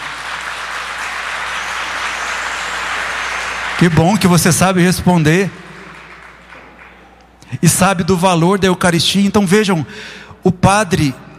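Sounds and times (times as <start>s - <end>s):
audience applauding: 0.0s - 7.4s
speech: 3.8s - 5.6s, 7.6s - 11.3s.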